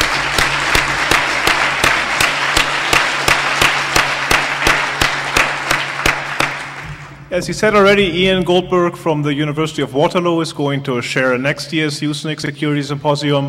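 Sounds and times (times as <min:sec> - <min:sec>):
audience applause: 0:00.0 - 0:07.2
speech: 0:07.3 - 0:13.4.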